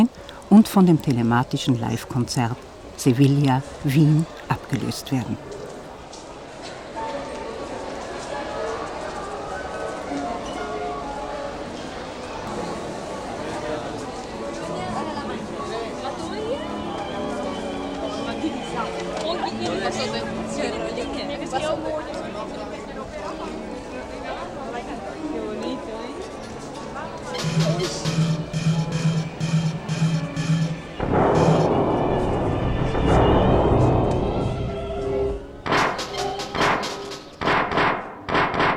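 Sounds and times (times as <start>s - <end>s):
crowd murmur outside an expo pavilion: 0.0s - 37.4s
speech: 0.6s - 5.6s.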